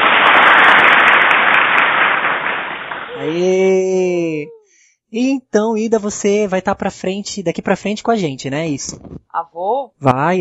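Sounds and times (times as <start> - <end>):
applause: 0.0 - 3.4
speech: 3.2 - 10.4.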